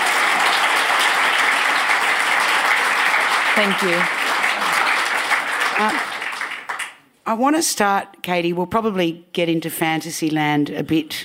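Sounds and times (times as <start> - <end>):
audience applauding to welcome a guest author: 0.0 - 7.0
speech: 3.6 - 4.2, 5.8 - 6.1, 7.3 - 11.2.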